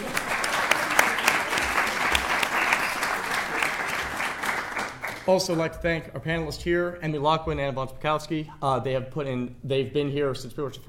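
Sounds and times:
audience applause: 0.0s - 5.6s
speech: 5.3s - 10.8s.

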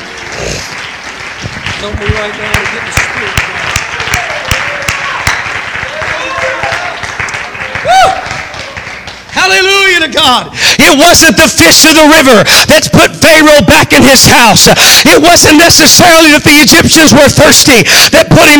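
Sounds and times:
audience clapping hands in praise: 0.0s - 10.2s
speech: 1.8s - 3.6s, 9.4s - 18.5s.

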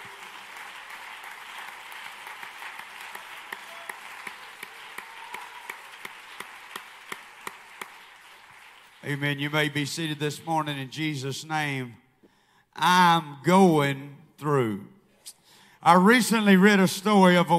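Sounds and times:
audience clapping hands: 0.0s - 10.5s
speech: 9.1s - 12.0s, 12.8s - 14.9s, 15.8s - 17.5s.

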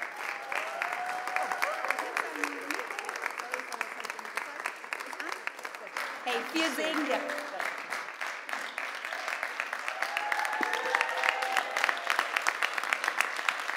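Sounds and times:
audience applause: 0.0s - 13.7s
speech: 6.3s - 7.4s
whistle or cheer: 9.9s - 11.9s.

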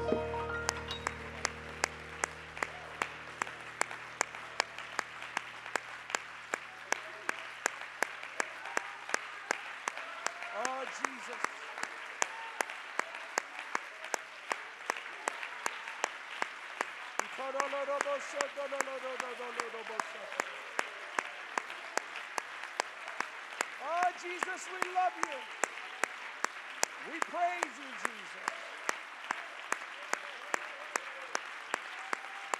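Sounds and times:
audience hand clapping in rhythm: 0.0s - 32.5s.

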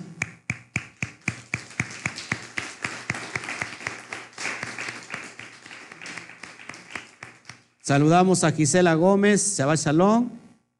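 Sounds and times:
rhythmic hand clapping: 0.0s - 7.9s
speech: 7.9s - 10.4s.

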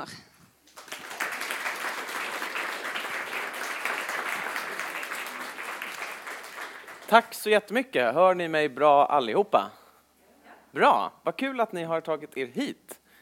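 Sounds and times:
speech: 0.0s - 0.3s, 7.1s - 9.8s, 10.8s - 13.0s
crowd applauding welcoming the speaker: 0.6s - 7.5s.

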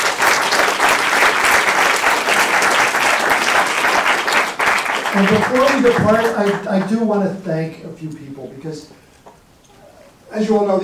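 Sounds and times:
audience applause: 0.0s - 6.9s
speech: 5.2s - 9.1s, 10.3s - 10.8s.

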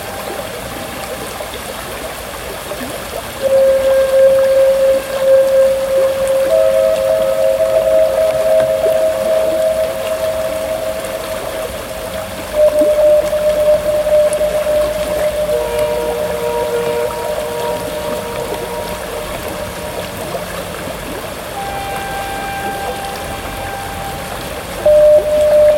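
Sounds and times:
water hiss by the River San: 0.0s - 25.7s
humming motor-like tone: 3.4s - 25.7s.

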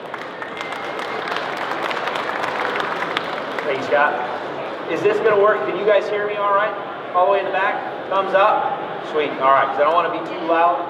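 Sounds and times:
crowd applauding to welcome a speaker: 0.0s - 4.1s
speech: 3.7s - 4.3s, 4.9s - 10.8s.

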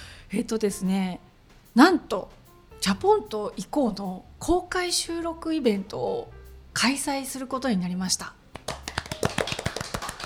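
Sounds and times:
speech: 0.3s - 8.4s
hand clapping: 8.5s - 10.2s.

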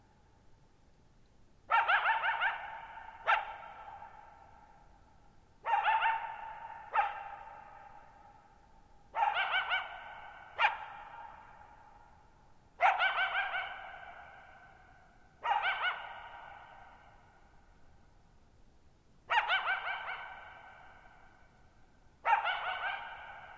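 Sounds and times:
coyote barking and yipping: 1.7s - 4.5s, 5.6s - 8.2s, 9.1s - 11.8s, 12.8s - 14.7s, 15.4s - 17.1s, 19.3s - 21.2s, 22.2s - 23.5s.

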